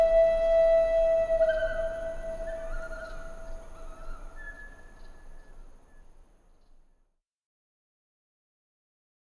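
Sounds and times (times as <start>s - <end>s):
Native American flutes: 0.0s - 4.4s
nature sounds: 0.0s - 6.9s.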